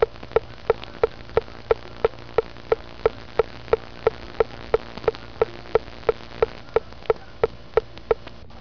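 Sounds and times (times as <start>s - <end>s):
ticking: 0.0s - 8.4s.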